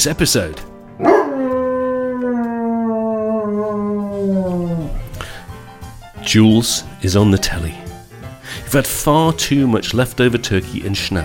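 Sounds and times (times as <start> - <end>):
speech: 0.0 - 1.2, 6.3 - 7.8, 8.5 - 11.2
dog howling: 1.0 - 5.1.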